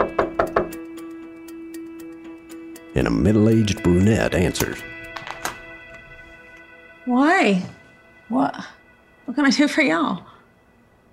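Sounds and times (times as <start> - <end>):
Panama City police knocking on a door: 0.0 - 0.9
speech: 3.0 - 5.0, 7.1 - 10.3.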